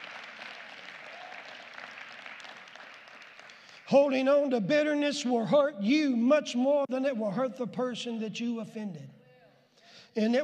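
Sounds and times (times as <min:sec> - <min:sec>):
audience hand clapping: 0:00.0 - 0:04.0
speech: 0:03.9 - 0:09.2, 0:10.1 - 0:10.4.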